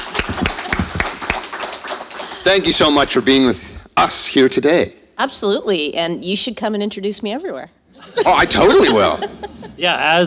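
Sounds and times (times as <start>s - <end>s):
audience applause: 0.0s - 2.8s
speech: 2.5s - 10.2s
laughter: 8.0s - 9.9s.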